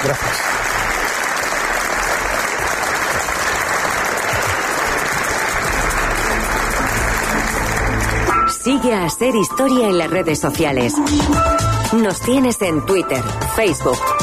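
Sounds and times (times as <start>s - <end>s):
speech: 0.0s - 0.5s, 8.6s - 14.2s
audience applause in a cathedral: 0.0s - 8.5s.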